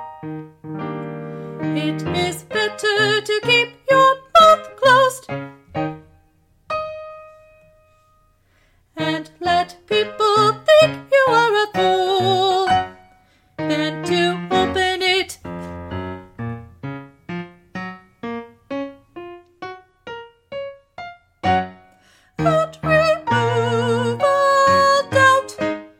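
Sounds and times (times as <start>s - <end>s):
soprano singing: 0.8s - 5.6s, 9.0s - 16.0s, 22.4s - 25.9s.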